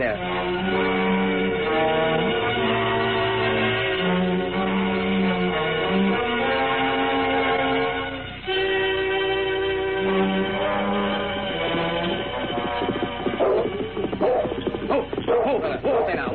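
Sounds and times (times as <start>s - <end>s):
steady sustained musical drone: 0.2s - 15.3s
dog barking and whimpering: 13.4s - 16.1s.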